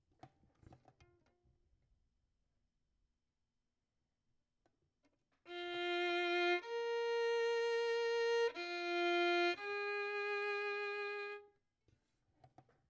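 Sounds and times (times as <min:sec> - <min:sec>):
violin: 0:05.5 - 0:11.6.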